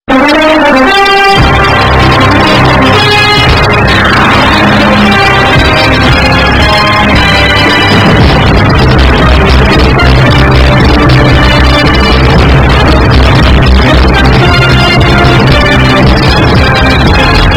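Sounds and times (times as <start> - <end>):
sports theme bass boosted: 0.1 - 17.5.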